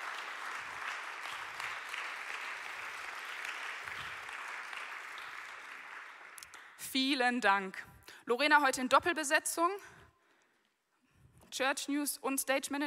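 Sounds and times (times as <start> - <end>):
audience applause: 0.0 - 6.6
speech: 6.9 - 10.0, 11.6 - 12.8.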